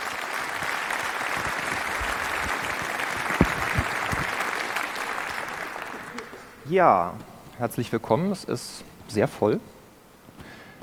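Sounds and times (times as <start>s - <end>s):
audience applause: 0.0s - 6.6s
speech: 6.7s - 9.8s.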